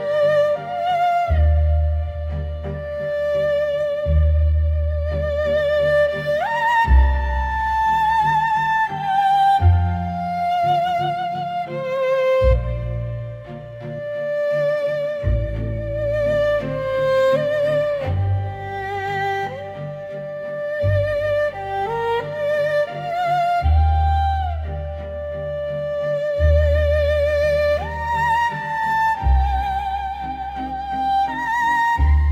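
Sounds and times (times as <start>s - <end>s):
game background music outside the match: 0.0s - 32.3s.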